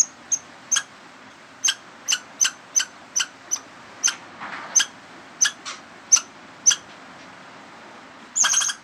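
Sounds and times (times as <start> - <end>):
rodent squeaks: 0.0 - 0.9, 1.6 - 6.8, 8.4 - 8.8.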